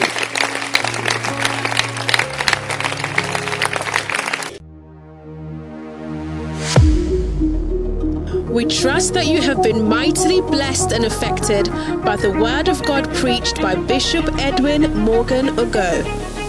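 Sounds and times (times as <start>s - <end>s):
audience clapping hands: 0.0s - 4.6s
sustained musical chord: 0.5s - 16.4s
speech: 8.5s - 16.3s.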